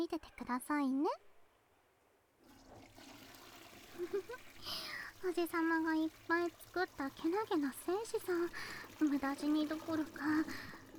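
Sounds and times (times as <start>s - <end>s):
speech: 0.0s - 1.3s, 4.0s - 10.8s
toilet flushing: 2.4s - 10.9s.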